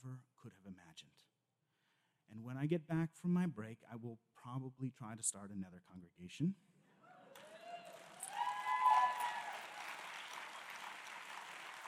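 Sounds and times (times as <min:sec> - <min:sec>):
speech: 0:00.0 - 0:01.1, 0:02.4 - 0:06.7
audience clapping: 0:07.3 - 0:11.8.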